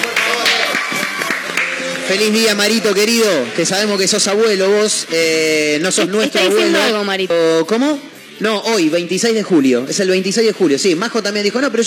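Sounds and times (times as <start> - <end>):
laughter: 0.0 - 1.8
audience applause: 0.0 - 2.8
speech: 2.1 - 11.8.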